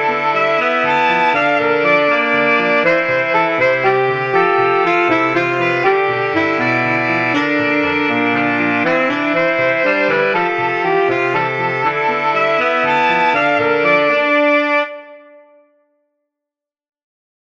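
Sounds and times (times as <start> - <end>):
saxophone tropical music: 0.0 - 15.8.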